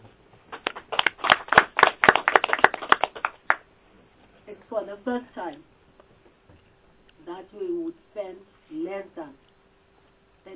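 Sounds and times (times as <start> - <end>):
small group applauding: 0.5 - 3.7
speech: 4.7 - 5.8, 7.3 - 9.5.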